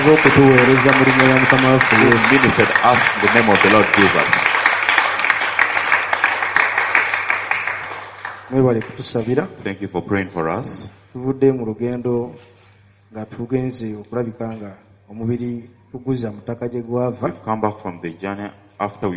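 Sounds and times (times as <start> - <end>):
man's amplified voice: 0.0 - 4.5, 8.5 - 12.4, 13.2 - 19.1
speech: 0.0 - 4.5, 8.5 - 12.5, 13.1 - 19.1
audience clapping: 0.0 - 9.4.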